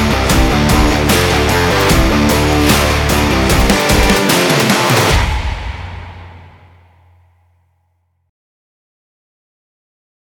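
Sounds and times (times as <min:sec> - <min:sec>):
epic rock trailer music: 0:00.0 - 0:07.1.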